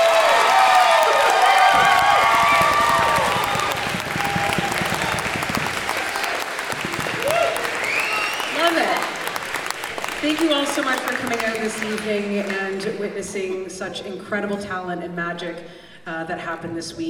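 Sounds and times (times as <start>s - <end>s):
audience applause: 0.0s - 12.8s
speech: 11.8s - 17.0s.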